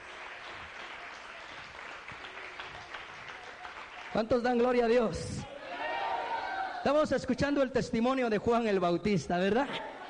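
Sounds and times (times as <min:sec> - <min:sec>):
audience applause: 0:00.0 - 0:05.0
speech: 0:04.1 - 0:05.6, 0:06.8 - 0:09.8.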